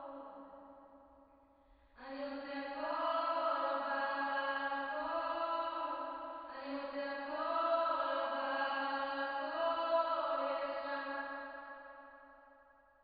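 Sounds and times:
choir singing: 2.2 - 11.8.

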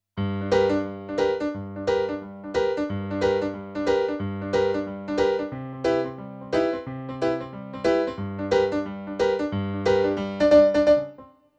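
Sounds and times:
rock and roll piano: 0.2 - 11.3.

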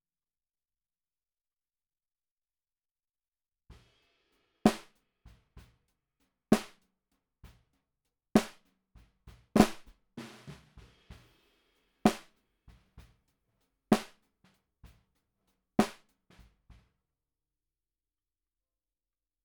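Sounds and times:
bottom snare drum: 3.7 - 5.8, 6.5 - 6.8, 8.4 - 13.3, 13.9 - 15.1, 15.8 - 16.9.

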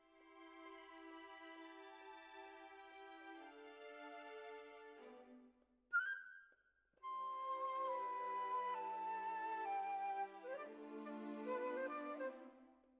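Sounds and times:
clarinet: 7.0 - 12.7.

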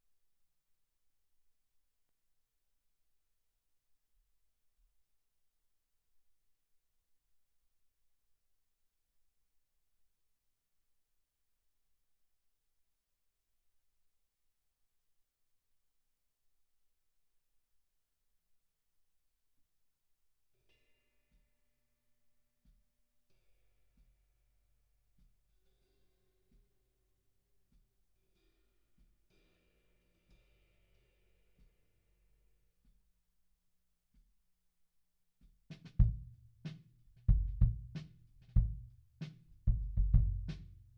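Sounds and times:
kick drum at 94 bpm: 35.4 - 40.9.

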